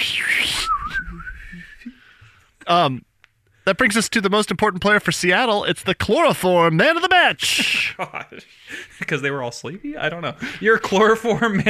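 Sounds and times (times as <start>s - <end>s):
person whistling a bird call impersonation: 0.0s - 2.0s
speech: 2.7s - 3.1s, 3.7s - 11.6s.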